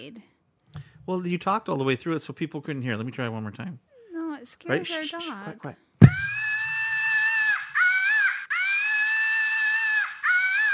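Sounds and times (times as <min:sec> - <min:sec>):
speech: 0:00.1 - 0:05.9
screaming flying monkey toy: 0:06.0 - 0:10.7.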